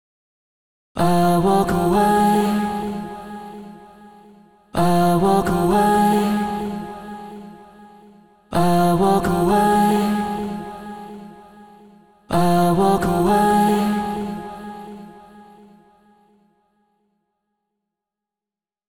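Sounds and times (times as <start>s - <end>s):
person singing: 1.0s - 15.8s.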